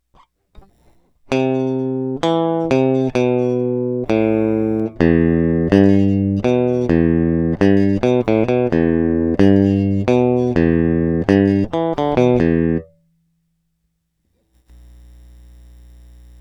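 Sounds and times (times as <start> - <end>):
electric guitar: 0.6 - 13.0.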